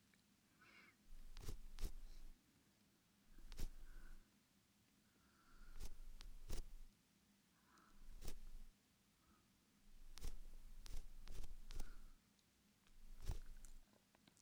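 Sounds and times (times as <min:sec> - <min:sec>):
ear pick cleaning in the left ear: 0:01.2 - 0:02.0, 0:03.4 - 0:03.8, 0:05.8 - 0:06.8, 0:08.1 - 0:08.7, 0:10.0 - 0:12.0, 0:13.0 - 0:13.8.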